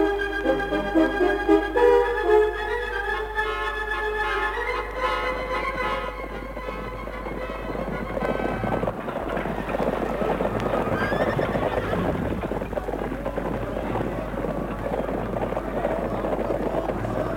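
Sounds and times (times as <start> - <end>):
horses galloping: 0.0 - 3.0, 3.9 - 17.3
horses neighing: 5.4 - 17.3.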